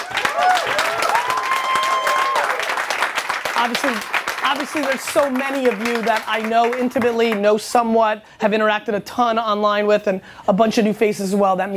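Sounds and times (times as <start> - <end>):
audience applause: 0.0 - 7.4
speech: 3.6 - 11.7.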